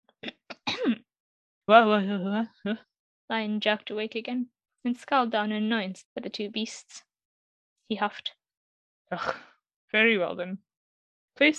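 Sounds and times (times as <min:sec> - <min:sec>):
throat clearing: 0:00.2 - 0:01.0, 0:09.1 - 0:09.5
speech: 0:01.7 - 0:07.1, 0:07.9 - 0:08.4, 0:09.1 - 0:10.7, 0:11.4 - 0:11.5.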